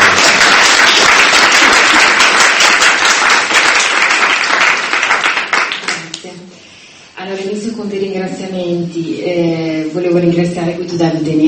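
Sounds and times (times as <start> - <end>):
audience applause: 0.0 - 6.2
speech: 7.8 - 11.4.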